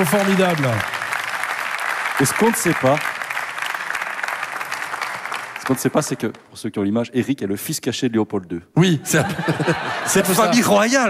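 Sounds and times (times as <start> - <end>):
speech: 0.0 - 0.9, 2.2 - 3.1, 5.7 - 11.0
audience applause: 0.0 - 6.4
laughter: 9.0 - 11.0.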